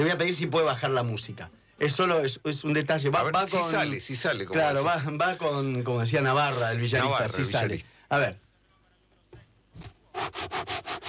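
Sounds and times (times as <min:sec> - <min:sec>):
speech: 0:00.0 - 0:08.4, 0:09.8 - 0:10.8
fingers scraping a textured cover printed with a photo of a milanesa: 0:10.1 - 0:11.0.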